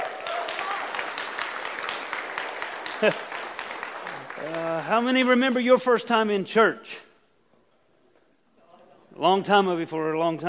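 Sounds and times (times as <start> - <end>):
church congregation clapping to welcome first-time visitors: 0.0 - 5.6
speech: 3.0 - 3.4, 4.4 - 7.1, 9.2 - 10.4.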